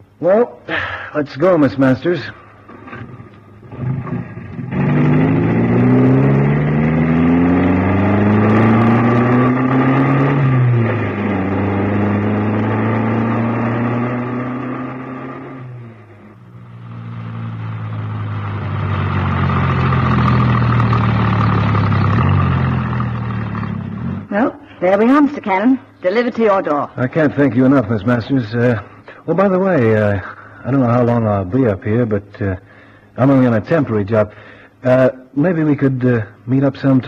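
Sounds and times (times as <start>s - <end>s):
speech: 0.2s - 2.4s, 25.4s - 37.0s
car engine starting and revving as the car pulls away: 2.6s - 24.3s.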